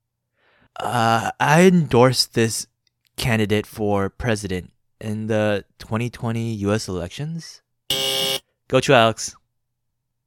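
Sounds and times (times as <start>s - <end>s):
speech: 0.8s - 7.6s, 8.7s - 9.4s
quiz buzzer: 7.9s - 8.4s.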